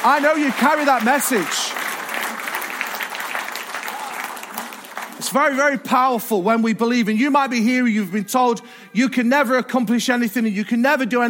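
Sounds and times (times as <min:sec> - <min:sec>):
speech: 0:00.0 - 0:01.7, 0:05.2 - 0:11.2
audience applause: 0:00.0 - 0:05.6.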